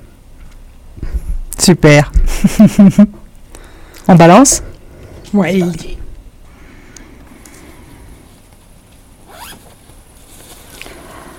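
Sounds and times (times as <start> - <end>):
speech: 1.6 - 3.2, 4.1 - 4.7, 5.3 - 5.9
person setting up a camp in the woods: 7.0 - 11.3.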